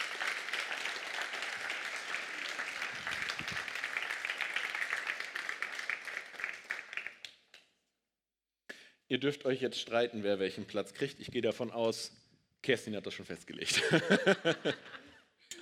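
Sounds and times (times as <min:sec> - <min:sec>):
audience applause: 0:00.0 - 0:07.3
speech: 0:09.1 - 0:15.0
laughter: 0:13.7 - 0:15.2.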